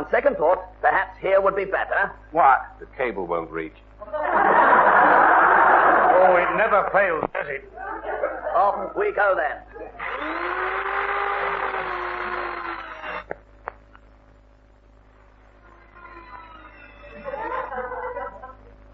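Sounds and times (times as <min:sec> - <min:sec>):
speech: 0:00.1 - 0:05.2, 0:06.2 - 0:10.4
laughter: 0:04.0 - 0:07.0, 0:07.8 - 0:09.0, 0:17.0 - 0:18.8
electric drill drilling into wall: 0:10.0 - 0:13.4, 0:15.5 - 0:17.3.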